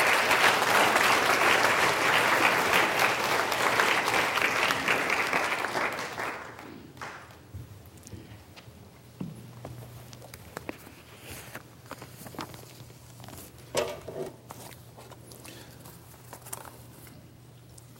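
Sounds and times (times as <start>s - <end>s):
church congregation applauding to welcome a speaker: 0.0s - 7.4s.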